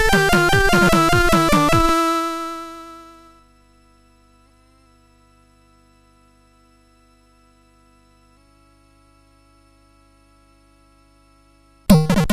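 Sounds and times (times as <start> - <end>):
MOS6581R3 SID chip medieval-style song: 0.0 - 3.3, 11.9 - 12.3.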